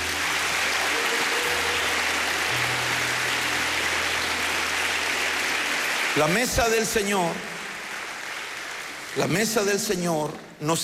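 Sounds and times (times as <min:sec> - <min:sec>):
audience applause: 0:00.0 - 0:10.4
speech: 0:06.2 - 0:07.5, 0:09.2 - 0:10.8.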